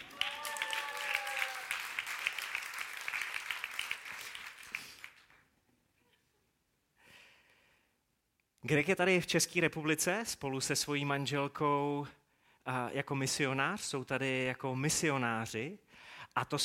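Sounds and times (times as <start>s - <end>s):
audience applause: 0.0s - 5.4s
speech: 8.7s - 16.6s.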